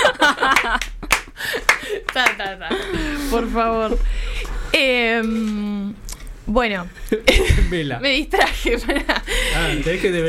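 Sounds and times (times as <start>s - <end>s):
hand clapping: 0.2s - 2.8s
speech: 2.2s - 4.2s, 4.8s - 10.2s.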